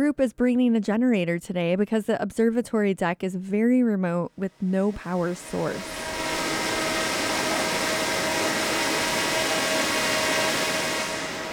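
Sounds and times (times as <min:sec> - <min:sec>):
speech: 0:00.0 - 0:06.0
drone flying past the deck overhead: 0:05.0 - 0:11.5.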